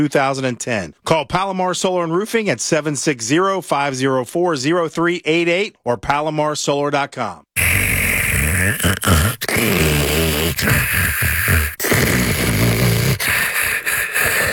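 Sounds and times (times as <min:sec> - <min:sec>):
speech: 0:00.0 - 0:07.6, 0:08.6 - 0:12.2
loud rasping snoring: 0:07.6 - 0:14.5.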